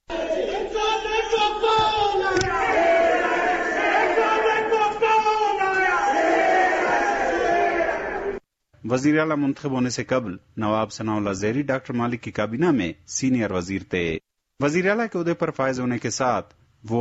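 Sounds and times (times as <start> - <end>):
Muslim League workers chanting slogans from assembly galleries: 0.1 - 8.4
speech: 8.9 - 16.9.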